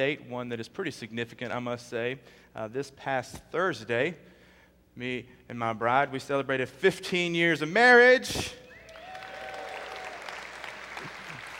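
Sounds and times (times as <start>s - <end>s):
speech: 0.0s - 4.3s, 5.0s - 8.6s
audience applause: 8.8s - 11.5s.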